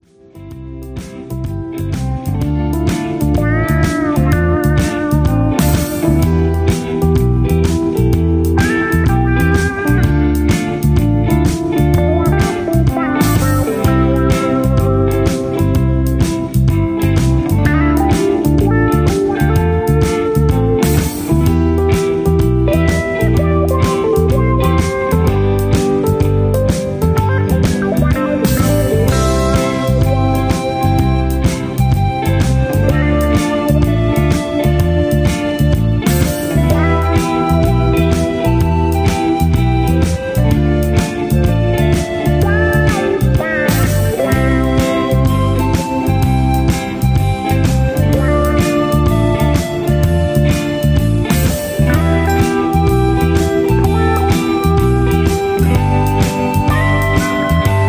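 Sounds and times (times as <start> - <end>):
instrumental music with leads: 0.0 - 57.8.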